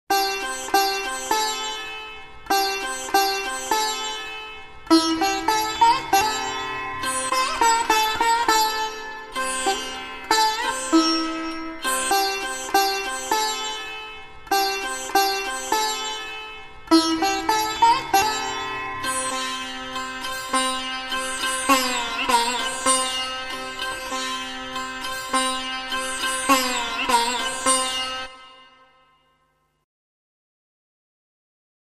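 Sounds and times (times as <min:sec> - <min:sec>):
Indian sitar playing: 0:00.1 - 0:29.5.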